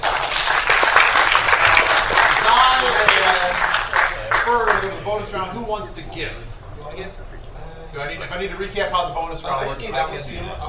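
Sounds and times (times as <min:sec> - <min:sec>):
applause from a group of people: 0:00.0 - 0:05.0
speech: 0:05.2 - 0:07.2, 0:07.9 - 0:10.6.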